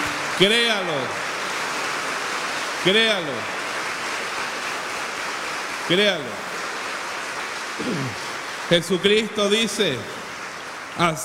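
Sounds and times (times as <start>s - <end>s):
audience applauding: 0.0s - 11.2s
speech: 0.4s - 1.3s, 2.8s - 3.6s, 5.9s - 6.4s, 7.8s - 10.2s, 11.0s - 11.2s
raised voices calling out: 7.8s - 8.2s.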